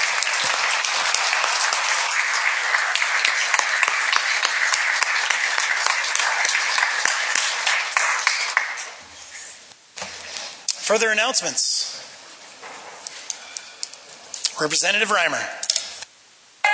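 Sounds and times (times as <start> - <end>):
applause: 0.0 - 9.0
speech: 10.9 - 11.8, 14.6 - 15.6.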